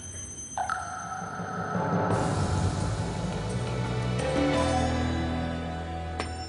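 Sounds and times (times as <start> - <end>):
online talk intro theme song: 1.4 - 6.2.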